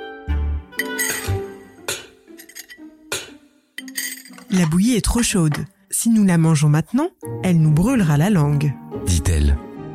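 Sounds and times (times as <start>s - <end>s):
bowls clinking as porridge is served: 0.8s - 5.7s
speech: 4.5s - 9.6s.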